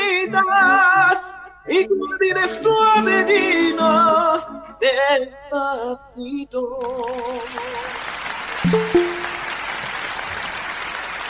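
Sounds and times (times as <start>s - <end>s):
speech: 0.4s - 9.0s
audience applause after live song: 7.0s - 11.2s.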